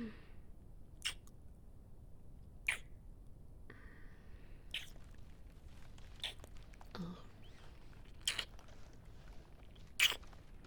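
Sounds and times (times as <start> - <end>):
wet noises: 1.0 - 1.4, 2.7 - 3.0, 3.7 - 10.6.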